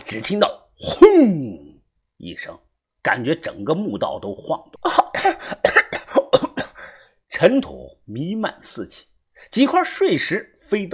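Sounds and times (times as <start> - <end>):
speech: 0.1 - 1.6, 2.2 - 5.8, 7.4 - 10.9
person coughing from dust: 0.8 - 1.6, 4.8 - 7.0.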